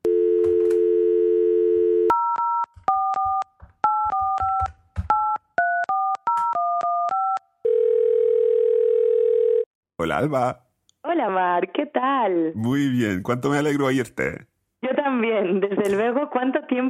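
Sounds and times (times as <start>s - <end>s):
line tone of an outgoing call: 0.0s - 3.3s, 6.5s - 9.7s
telephone dial tone: 0.0s - 4.7s, 5.6s - 9.7s
speech: 10.0s - 14.5s, 15.2s - 16.8s.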